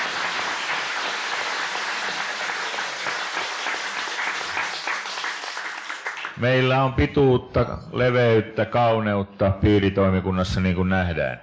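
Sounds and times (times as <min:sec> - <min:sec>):
audience applause: 0:00.0 - 0:06.4
speech: 0:06.4 - 0:11.4.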